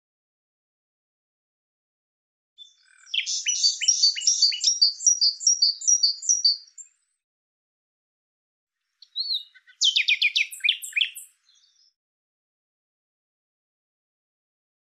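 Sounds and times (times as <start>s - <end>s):
bird singing buzzy chirps: 2.6s - 7.2s, 9.0s - 12.0s.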